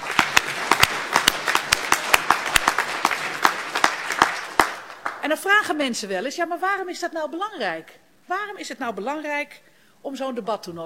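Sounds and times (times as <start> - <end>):
audience applause: 0.0 - 5.2
speech: 5.3 - 10.8.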